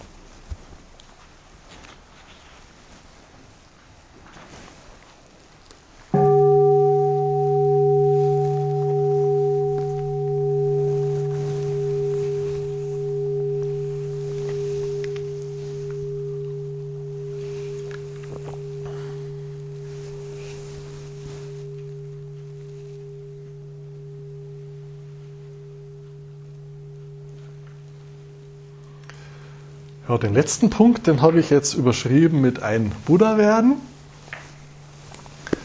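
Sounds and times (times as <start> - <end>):
bell ringing: 6.2 - 31.2
speech: 30.1 - 33.9.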